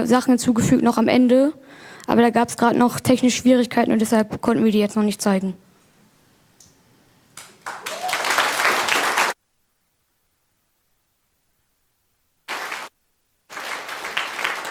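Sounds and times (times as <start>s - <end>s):
speech: 0.0s - 5.6s
audience applause: 7.4s - 9.4s, 12.5s - 12.9s, 13.5s - 14.7s.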